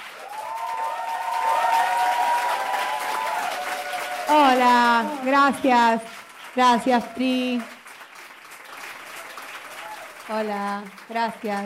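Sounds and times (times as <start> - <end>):
faint whistles and cheers: 0.0 - 4.4
crowd clapping: 0.0 - 11.6
speech: 4.3 - 7.8, 10.3 - 11.6.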